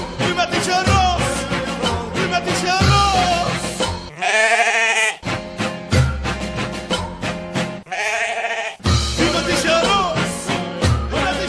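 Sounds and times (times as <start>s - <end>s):
dense rhythmic thumping music: 0.0s - 4.1s, 5.2s - 7.8s, 8.8s - 11.4s
wavering nasal sheep bleating: 4.1s - 5.3s, 7.8s - 8.9s.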